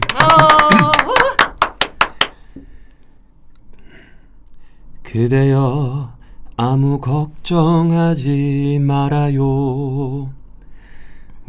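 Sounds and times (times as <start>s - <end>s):
crowd clapping: 0.0s - 2.4s
speech: 0.2s - 0.7s, 5.1s - 10.4s.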